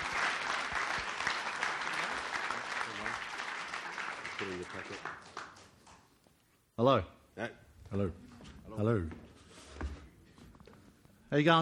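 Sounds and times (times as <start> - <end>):
church congregation applause welcoming a speaker: 0.0 - 6.1
speech: 4.4 - 5.4, 6.8 - 9.2, 11.3 - 11.5.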